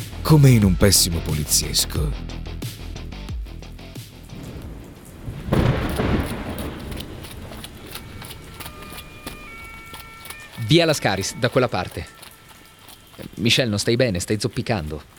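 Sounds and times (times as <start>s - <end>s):
speech: 0.2s - 2.5s, 10.7s - 12.2s, 13.2s - 15.1s
heavy pouring rain: 4.3s - 8.6s.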